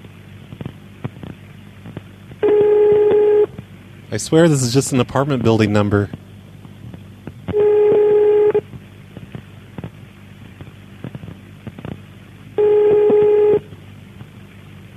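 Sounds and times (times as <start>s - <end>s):
telephone beeping tones: 2.4s - 3.6s, 7.5s - 8.7s, 12.6s - 13.7s
speech: 4.1s - 6.2s.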